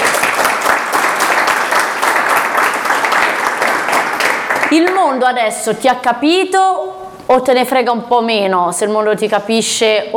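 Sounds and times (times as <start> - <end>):
applause: 0.0 - 5.2
speech: 4.7 - 10.1.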